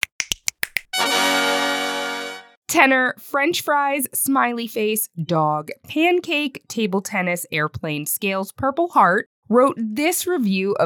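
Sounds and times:
crisp finger snaps: 0.0s - 0.9s
loud sustained bright musical chord: 1.0s - 2.6s
speech: 2.7s - 10.8s.

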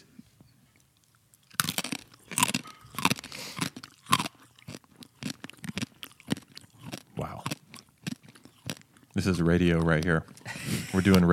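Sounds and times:
coffee beans crunched between the teeth: 1.4s - 10.4s
speech: 9.2s - 11.3s.

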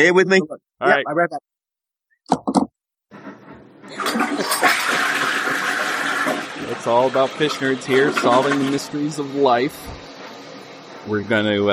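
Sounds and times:
speech: 0.0s - 1.5s, 2.3s - 2.7s, 3.9s - 5.4s, 6.6s - 10.0s, 11.0s - 11.7s
toilet flushing: 3.1s - 11.7s.

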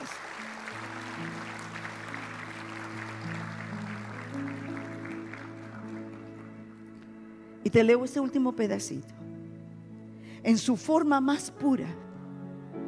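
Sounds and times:
audience clapping: 0.0s - 7.1s
sustained held keyboard chords: 0.0s - 7.9s
speech: 7.6s - 9.2s, 10.4s - 12.0s.

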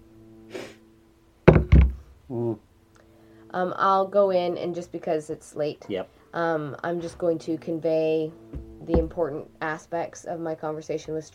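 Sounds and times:
hollow knocking on a door: 1.5s - 2.1s, 8.5s - 9.3s
voiced murmur: 2.3s - 2.6s
speech: 2.3s - 2.7s, 3.5s - 11.3s.

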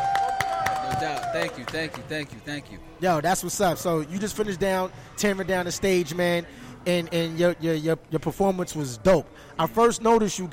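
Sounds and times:
audience applause: 0.0s - 2.1s
speech: 1.1s - 10.5s.

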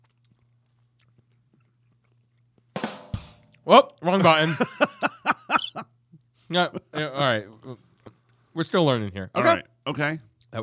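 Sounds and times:
crunchy chewing sound effect: 0.0s - 2.8s
speech: 3.6s - 4.9s, 6.5s - 7.8s, 8.6s - 10.6s
laughter: 4.2s - 5.9s.

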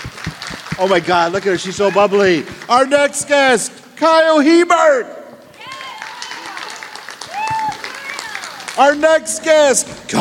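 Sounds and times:
scattered cheers, voices and high whoops: 0.0s - 2.9s, 5.5s - 8.8s
audience applause for arriving guest: 0.0s - 3.2s, 5.5s - 9.7s
speech: 0.8s - 5.2s, 8.8s - 10.1s.

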